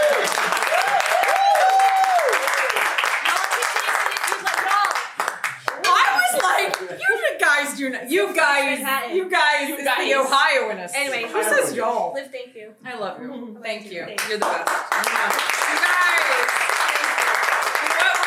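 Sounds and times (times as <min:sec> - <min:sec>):
audience clapping: 0:00.0 - 0:07.5, 0:14.2 - 0:18.2
speech: 0:07.8 - 0:15.5.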